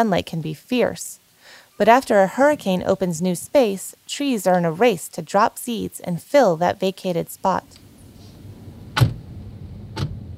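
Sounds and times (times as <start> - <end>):
speech: 0.0 - 1.2, 1.8 - 7.8
Forest Service Jeep engine rumble: 7.7 - 10.3
Forest Service Jeep door thumps on a mountain road: 8.9 - 9.3, 9.9 - 10.3.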